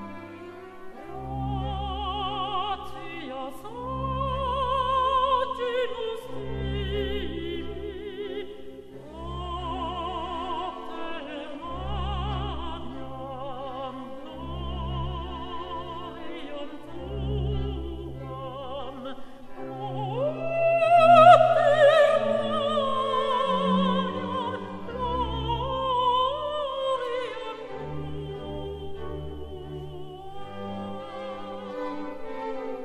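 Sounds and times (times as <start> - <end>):
alto voice singing a mass: 0.9 - 32.8.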